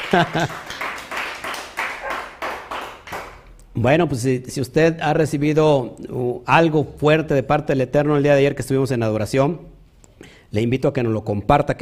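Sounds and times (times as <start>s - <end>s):
laughter: 0.0s - 0.9s
audience rhythmic clapping: 0.0s - 3.5s
speech: 0.1s - 0.8s, 3.8s - 9.8s, 10.5s - 11.8s.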